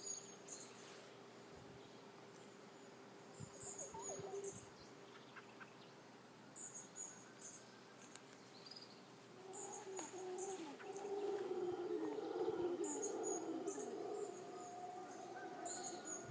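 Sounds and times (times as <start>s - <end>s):
howler monkey roaring and moaning: 9.4s - 16.2s.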